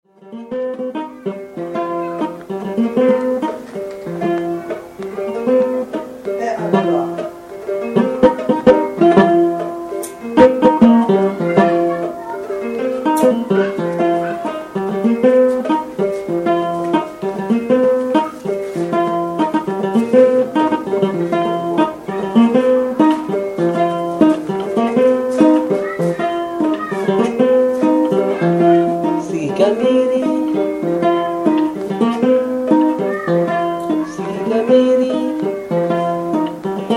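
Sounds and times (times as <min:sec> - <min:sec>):
ngoni playing: 0:00.1 - 0:36.9.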